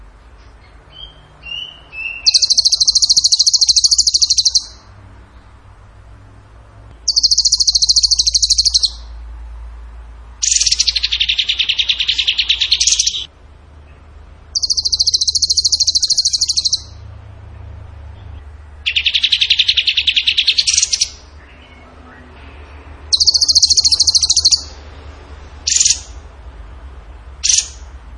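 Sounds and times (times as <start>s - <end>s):
bird singing rapid high trills: 0.9s - 4.9s, 7.0s - 9.2s, 10.4s - 13.3s, 14.5s - 17.1s, 18.8s - 21.9s, 23.1s - 24.8s, 25.6s - 26.2s, 27.4s - 27.9s.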